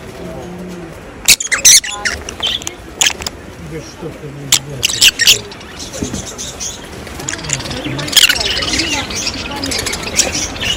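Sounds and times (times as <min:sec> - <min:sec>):
rosy-faced lovebird squeaking: 0:01.2 - 0:03.3, 0:04.8 - 0:10.7.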